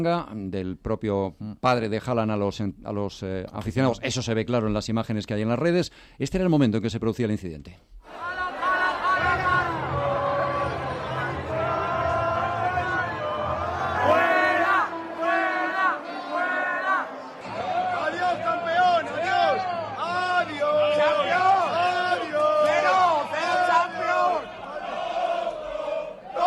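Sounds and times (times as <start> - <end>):
speech: 0.0 - 8.4
stadium crowd shouting insults: 8.1 - 26.4.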